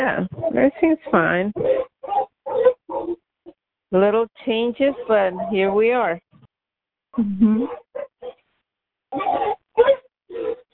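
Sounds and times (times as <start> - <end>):
speech: 0.0 - 1.9, 3.9 - 6.2
dog making noises: 1.5 - 3.2, 4.9 - 5.8, 9.2 - 10.7.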